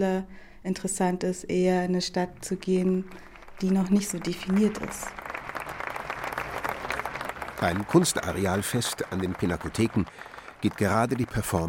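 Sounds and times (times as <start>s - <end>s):
speech: 0.0s - 5.2s, 7.6s - 11.6s
audience applauding politely after a performance: 3.1s - 11.6s.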